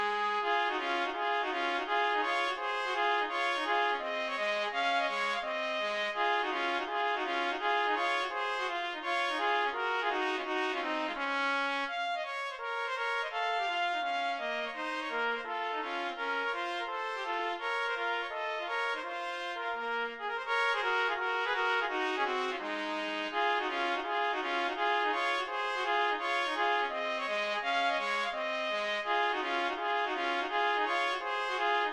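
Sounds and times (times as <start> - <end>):
two trumpets playing a musette in E-flat major: 0.0 - 31.9.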